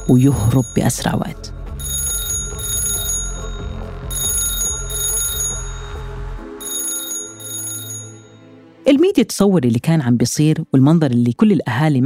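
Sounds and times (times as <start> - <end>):
telephone ringing: 0.0 - 8.8
speech: 0.1 - 1.6, 8.9 - 12.0.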